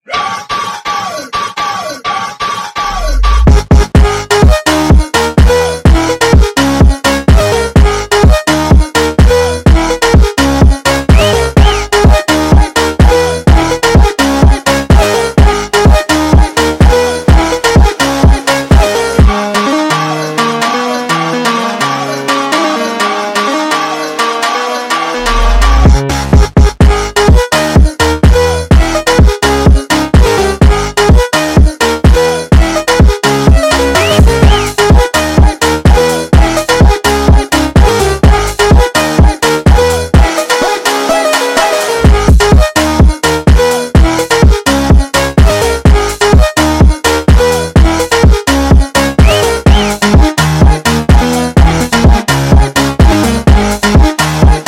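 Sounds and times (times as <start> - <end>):
sped up funk music: 0.4 - 54.6.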